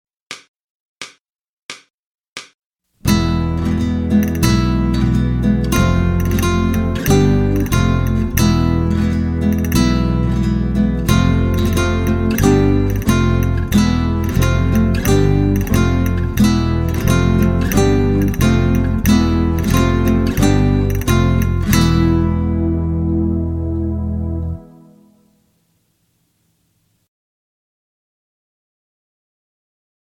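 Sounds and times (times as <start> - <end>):
Spanish theme music: 3.0 - 25.8.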